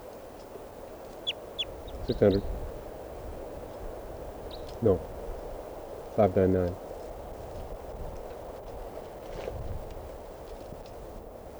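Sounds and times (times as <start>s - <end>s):
bird call: 0.5s - 2.6s
speech: 2.1s - 2.6s, 4.8s - 5.1s, 6.2s - 6.8s.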